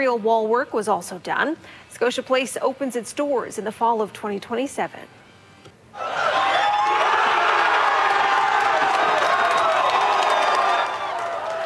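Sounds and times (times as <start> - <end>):
speech: 0.0 - 5.2
crowd cheering at World Cup watch party: 6.0 - 11.6.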